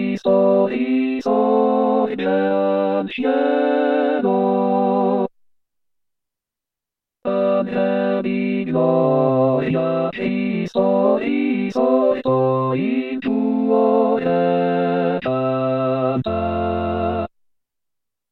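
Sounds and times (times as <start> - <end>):
choir singing an Easter hymn: 0.0 - 5.3, 7.3 - 17.3.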